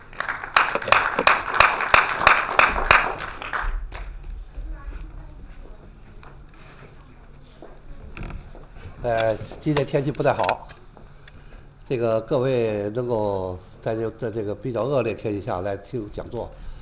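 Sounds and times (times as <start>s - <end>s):
warm audience applause: 0.0s - 4.2s
speech: 9.0s - 10.8s, 11.9s - 16.6s.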